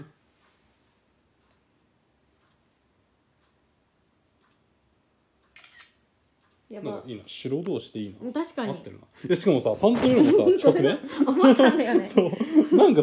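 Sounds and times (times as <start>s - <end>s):
camera shutter taking a photo: 5.5s - 6.0s
speech: 6.7s - 13.0s
laughter: 9.9s - 13.0s.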